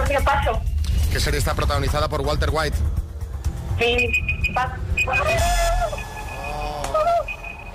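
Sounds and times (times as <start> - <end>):
speech: 0.1 - 3.0, 3.8 - 5.7
timer alarm beeping: 3.8 - 7.7
warbling siren-like timer alarm tones: 3.8 - 7.7
voices murmuring: 4.6 - 7.7.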